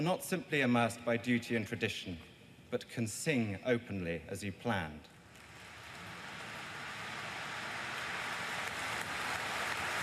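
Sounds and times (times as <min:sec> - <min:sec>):
speech: 0:00.0 - 0:05.2
huge crowd applauding outside a church: 0:05.5 - 0:10.0.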